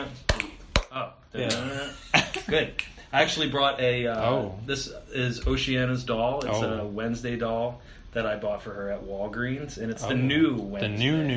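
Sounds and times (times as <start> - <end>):
hand clapping a rhythm: 0.3 - 0.9
speech: 1.0 - 11.3.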